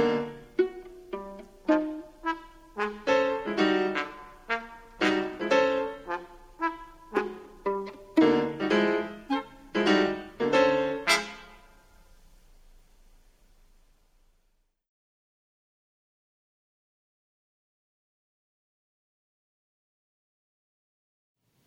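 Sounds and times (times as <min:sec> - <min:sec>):
concerto for nine instruments, very fast movement: 0:00.0 - 0:11.6.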